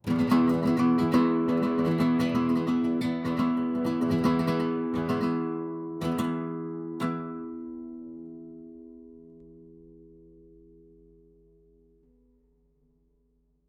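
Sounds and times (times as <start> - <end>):
acoustic music: 0.0 - 12.4.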